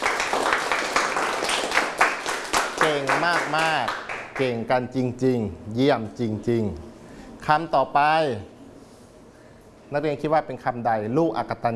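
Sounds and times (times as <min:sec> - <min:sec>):
students in a classroom clapping after a correct answer: 0:00.0 - 0:04.6
speech: 0:02.9 - 0:08.5, 0:09.9 - 0:11.7.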